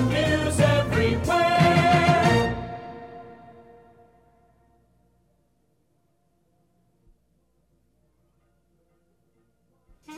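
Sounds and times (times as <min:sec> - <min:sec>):
hardbeat music: 0:00.0 - 0:03.9.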